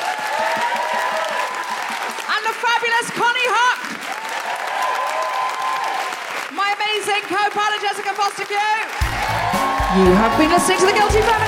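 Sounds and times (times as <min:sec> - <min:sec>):
loud applause from a large audience: 0:00.0 - 0:11.4
speech: 0:07.0 - 0:11.4.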